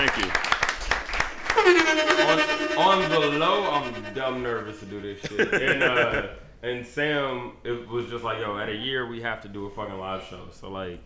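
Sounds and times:
audience hand clapping: 0.0 - 4.2
laughter: 1.5 - 6.6
speech: 1.9 - 11.0.

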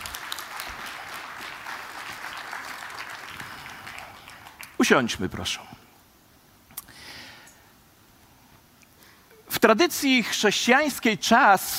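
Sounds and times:
audience applauding: 0.0 - 5.1
speech: 4.8 - 5.8, 9.6 - 11.7.

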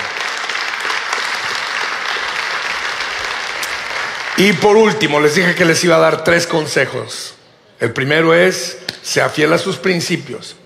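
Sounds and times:
applause: 0.0 - 5.8
speech: 4.4 - 10.6.

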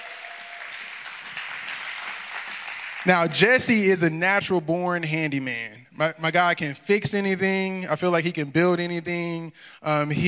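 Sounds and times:
audience applause: 0.0 - 3.5
speech: 3.0 - 10.2.

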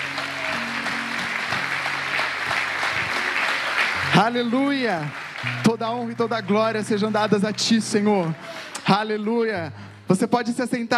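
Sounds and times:
audience applause: 0.0 - 8.8
speech: 4.2 - 10.9.

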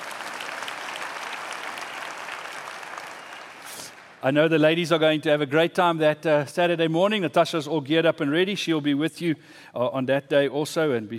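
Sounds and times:
audience applause: 0.0 - 4.2
speech: 4.2 - 11.1.

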